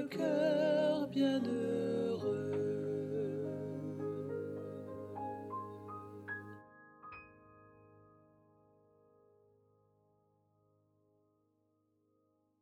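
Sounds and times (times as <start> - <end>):
gospel sopranos singing a Christmas carol: 0.0 - 6.6.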